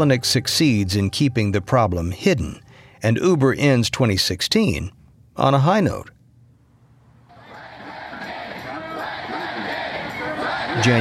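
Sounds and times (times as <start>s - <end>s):
speech: 0.0s - 6.2s, 10.8s - 10.9s
noisy protest crowd babble at airport: 7.3s - 10.9s.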